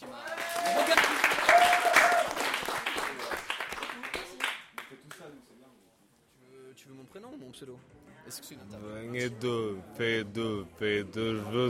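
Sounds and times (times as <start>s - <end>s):
audience applauding with voices and whoops: 0.0s - 5.2s
speech: 8.3s - 11.6s.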